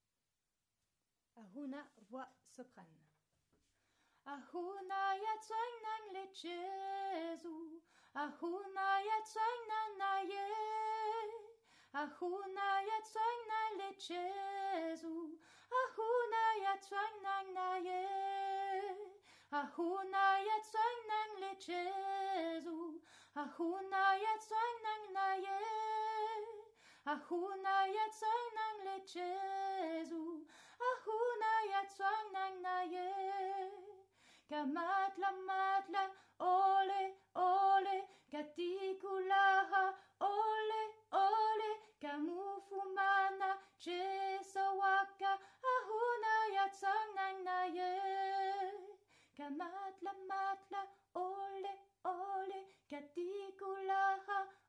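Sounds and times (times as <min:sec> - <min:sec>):
soprano singing: 0:04.3 - 0:54.6.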